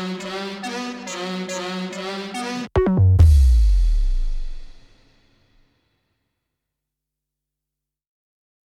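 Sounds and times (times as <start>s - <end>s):
instrumental music: 0.2s - 4.9s.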